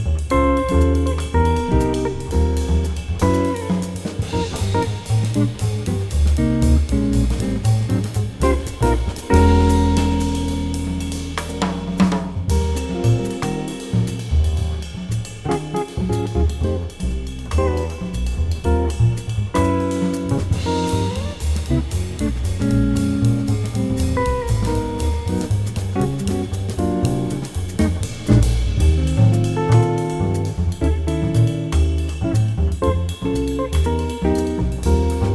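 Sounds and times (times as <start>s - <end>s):
modern jazz piano play-along in Eb: 0.0s - 35.3s.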